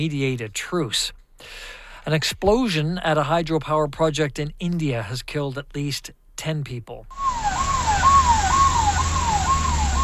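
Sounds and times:
speech: 0:00.0 - 0:07.4
ambulance siren racing to blast site: 0:07.1 - 0:10.0.

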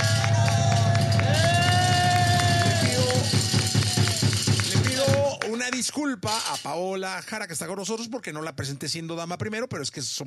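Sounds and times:
studio audience applause: 0:00.0 - 0:06.0
crowd cheering: 0:00.0 - 0:06.4
speech: 0:06.1 - 0:10.2.

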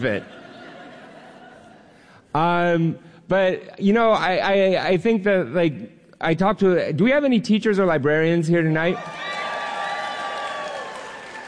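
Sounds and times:
speech: 0:00.0 - 0:00.4, 0:02.3 - 0:09.3
laughter: 0:00.0 - 0:02.1
audience clapping: 0:09.0 - 0:11.4.

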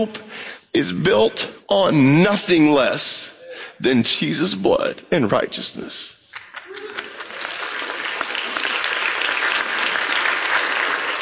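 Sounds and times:
speech: 0:00.0 - 0:06.9
audience golf clap: 0:06.4 - 0:11.2.

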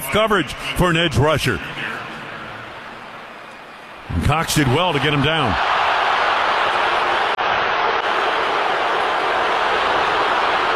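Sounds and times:
speech: 0:00.1 - 0:01.8, 0:04.2 - 0:05.7
stadium crowd roaring: 0:03.9 - 0:10.7.

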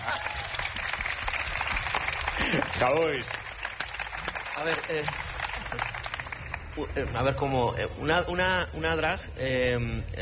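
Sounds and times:
audience applause: 0:00.0 - 0:07.6
speech: 0:02.8 - 0:03.4, 0:04.6 - 0:05.9, 0:06.8 - 0:10.2.

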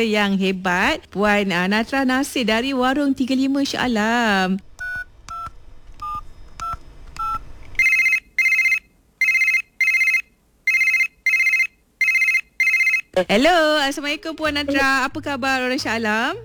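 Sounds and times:
speech: 0:00.0 - 0:04.7, 0:13.2 - 0:16.4
phone keypad dialing tones: 0:04.8 - 0:13.3.

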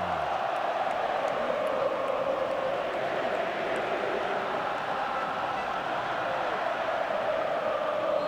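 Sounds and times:
football stadium crowd of supporters cheering at MetLife: 0:00.0 - 0:08.2.

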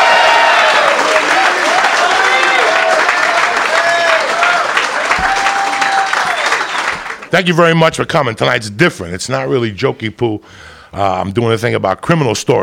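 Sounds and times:
audience applause for comedian: 0:00.0 - 0:07.3
speech: 0:07.3 - 0:12.6.

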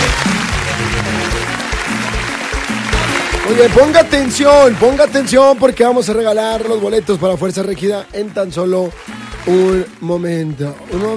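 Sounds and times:
audience applause: 0:00.0 - 0:11.1
speech: 0:03.5 - 0:11.1.

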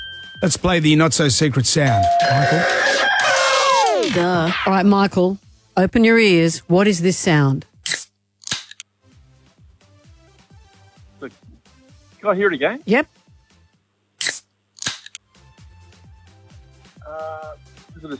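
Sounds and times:
speech: 0:00.4 - 0:03.4, 0:04.0 - 0:07.7, 0:12.2 - 0:13.2
cap gun firing: 0:07.9 - 0:08.9, 0:14.2 - 0:15.2.

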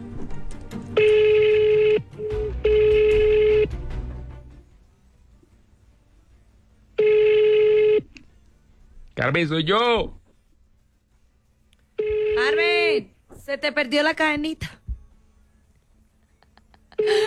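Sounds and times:
telephone ringing: 0:01.0 - 0:03.7, 0:07.0 - 0:08.1, 0:12.0 - 0:13.0
speech: 0:09.3 - 0:10.2, 0:12.5 - 0:14.8.

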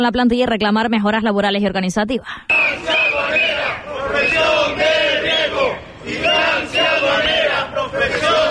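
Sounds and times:
speech: 0:00.0 - 0:08.4
crowd of protesters chanting at a workplace rally: 0:02.5 - 0:08.4.

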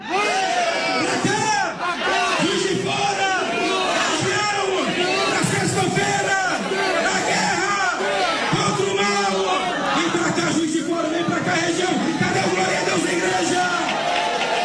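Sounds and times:
crowd shouting and cheering: 0:00.0 - 0:14.6.

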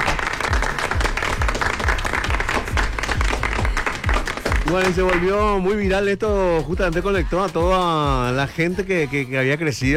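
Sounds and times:
applause: 0:00.0 - 0:05.7
speech: 0:04.7 - 0:09.9.

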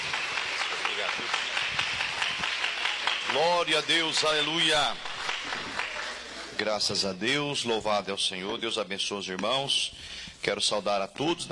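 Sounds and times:
audience applauding: 0:00.0 - 0:06.5
speech: 0:03.3 - 0:05.1, 0:06.6 - 0:11.5.

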